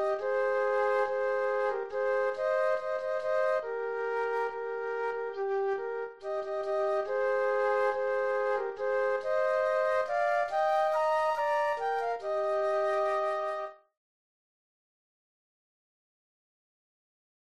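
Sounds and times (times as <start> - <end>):
flute duet: 0.0 - 13.9.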